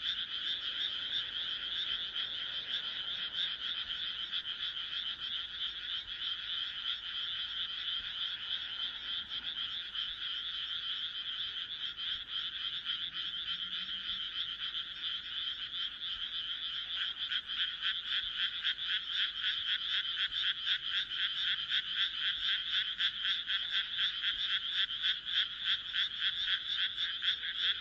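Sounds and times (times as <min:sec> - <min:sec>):
frogs croaking chorus: 0:00.0 - 0:27.7.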